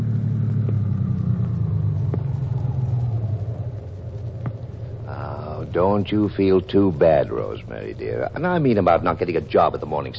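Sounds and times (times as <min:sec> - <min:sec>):
car stopping: 0:00.0 - 0:10.1
speech: 0:05.8 - 0:10.1.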